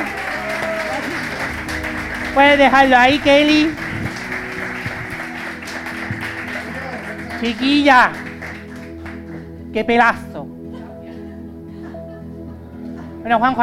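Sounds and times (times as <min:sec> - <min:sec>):
audience applause: 0:00.0 - 0:09.5
tonal music-like burst: 0:00.0 - 0:09.7
speech: 0:02.4 - 0:04.0, 0:07.4 - 0:08.2, 0:09.7 - 0:10.3, 0:13.3 - 0:13.6.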